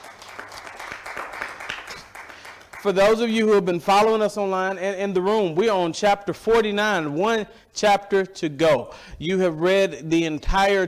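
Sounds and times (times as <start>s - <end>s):
audience hand clapping: 0.0s - 3.4s
speech: 2.8s - 10.8s.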